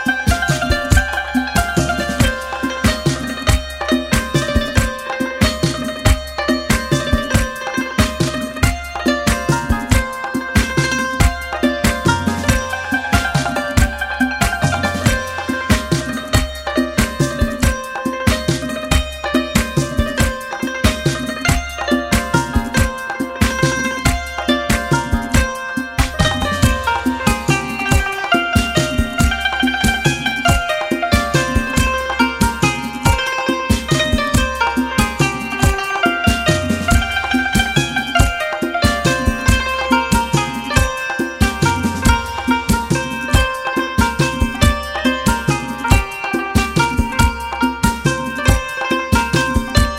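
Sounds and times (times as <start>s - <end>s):
santur: 0.0s - 49.9s.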